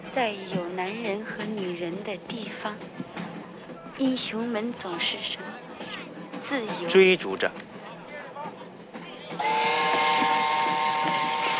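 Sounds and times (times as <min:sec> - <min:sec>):
train rumbling: 0:00.0 - 0:11.5
speech: 0:00.2 - 0:03.0, 0:04.0 - 0:05.5, 0:06.4 - 0:07.6
train whistle as train approaches a station: 0:09.1 - 0:11.5.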